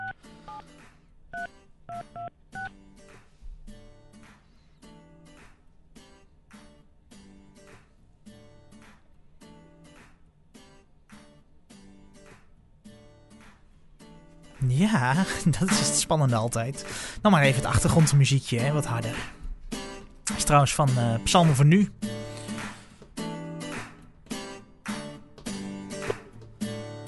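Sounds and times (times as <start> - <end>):
touch-tone keypad beeps dialing a telephone number: 0.0 - 0.6, 1.4 - 2.7
speech: 14.7 - 19.4, 20.5 - 22.1.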